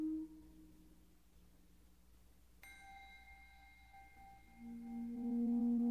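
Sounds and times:
lullaby music at 432 Hz: 2.6 - 5.8.

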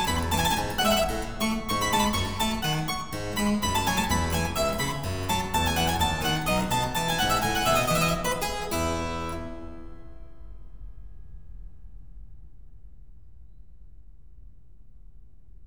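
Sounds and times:
piano piece in F: 0.0 - 10.2.

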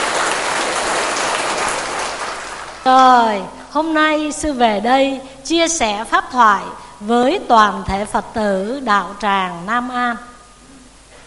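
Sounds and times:
round of applause: 0.0 - 2.9
speech: 2.9 - 10.3.

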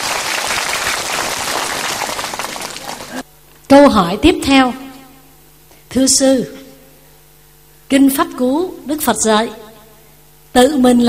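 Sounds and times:
crowd clapping: 0.0 - 3.2
speech: 3.7 - 4.8, 6.0 - 6.6, 7.9 - 9.6, 10.6 - 11.0.

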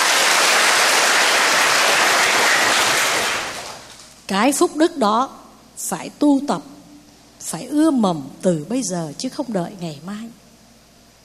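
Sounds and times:
audience applause: 0.0 - 4.0
speech: 4.3 - 6.8, 7.4 - 10.4.

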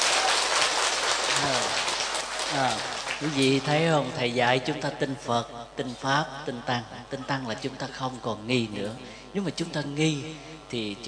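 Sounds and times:
audience applause: 0.0 - 3.7
speech: 2.5 - 11.0.

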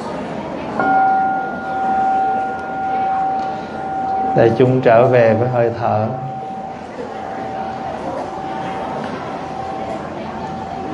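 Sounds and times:
meditation bell being struck: 0.8 - 8.6
speech: 4.4 - 6.4.

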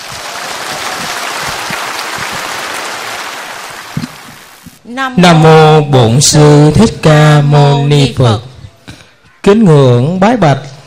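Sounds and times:
audience applause: 0.0 - 4.6
speech: 4.9 - 8.5, 9.4 - 10.7.

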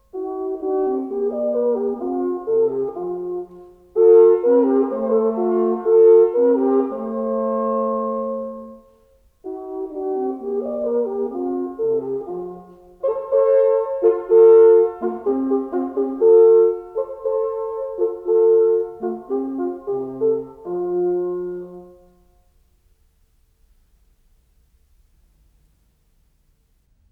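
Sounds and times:
two horns playing an allegro duo: 0.2 - 8.8, 9.5 - 22.1.

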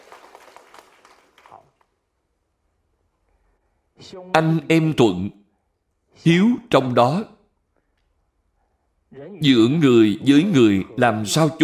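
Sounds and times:
audience applause: 0.0 - 1.8
speech: 4.0 - 5.4, 6.2 - 7.4, 9.1 - 11.6.

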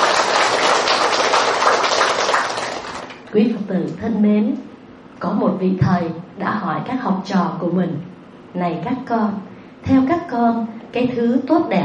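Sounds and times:
audience applause: 0.0 - 3.2
speech: 3.3 - 11.8.

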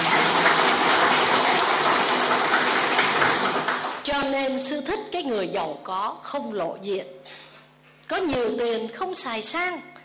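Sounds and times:
round of applause: 0.0 - 4.0
speech: 4.6 - 7.4, 8.1 - 9.9.

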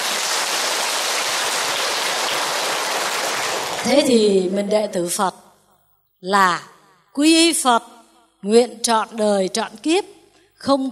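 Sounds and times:
crowd clapping: 0.0 - 4.2
speech: 3.8 - 5.5, 6.2 - 10.9.

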